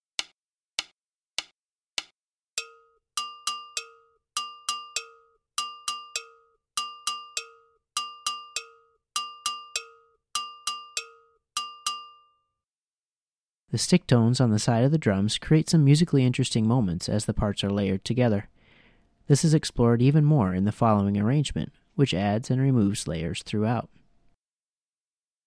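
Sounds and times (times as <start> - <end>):
sharp count-in clicks: 0.2 - 12.0
gankogui double bell pattern: 2.6 - 12.4
speech: 13.7 - 18.6, 19.3 - 24.0.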